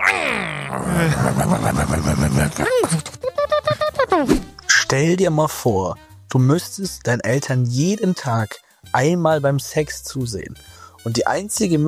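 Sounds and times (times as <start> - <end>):
voice imitating a car engine: 0.0 - 3.1
speech: 0.1 - 3.1, 4.9 - 11.8
laughter: 0.8 - 4.3.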